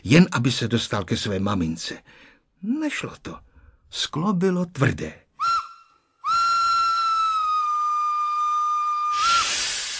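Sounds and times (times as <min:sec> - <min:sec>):
speech: 0:00.0 - 0:05.2
train whistle as train departs: 0:05.4 - 0:09.9
rush of hissing steam: 0:09.0 - 0:09.9.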